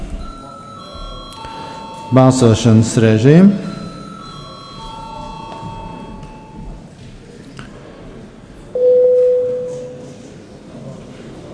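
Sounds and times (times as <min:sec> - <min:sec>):
sustained electronic bell signal calling a vote: 0:00.1 - 0:06.8, 0:08.8 - 0:10.1
speech: 0:02.1 - 0:03.7.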